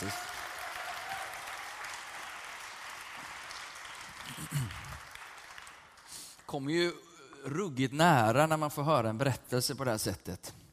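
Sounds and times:
speech: 0:00.0 - 0:00.2, 0:04.3 - 0:04.9, 0:06.5 - 0:10.6
audience applause: 0:00.0 - 0:06.5.

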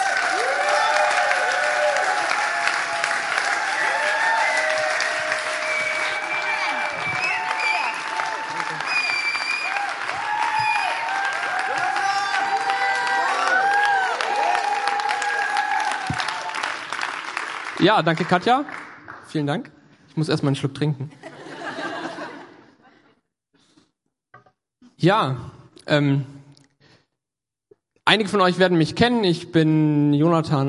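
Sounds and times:
audience applause: 0:00.0 - 0:19.2
speech: 0:17.8 - 0:21.2, 0:25.0 - 0:26.4, 0:28.1 - 0:30.6
laughter: 0:21.1 - 0:23.2.

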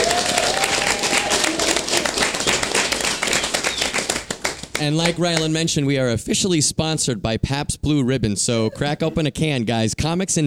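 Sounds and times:
audience applause: 0:00.0 - 0:05.5
speech: 0:04.8 - 0:10.4.

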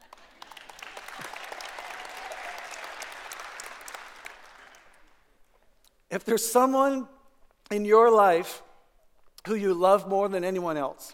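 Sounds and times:
audience clapping: 0:00.0 - 0:05.4
speech: 0:06.1 - 0:07.1, 0:07.7 - 0:08.7, 0:09.4 - 0:11.1.

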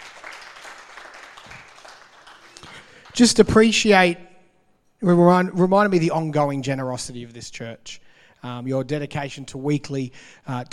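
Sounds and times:
audience applause: 0:00.0 - 0:03.4
speech: 0:03.2 - 0:04.3, 0:05.0 - 0:10.7.

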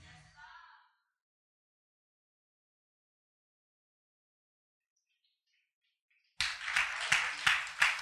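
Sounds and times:
audience clapping: 0:06.4 - 0:07.9.

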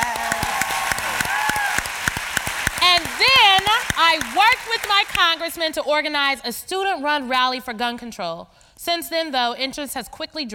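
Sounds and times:
audience applause: 0:00.0 - 0:05.4
speech: 0:04.0 - 0:10.5.

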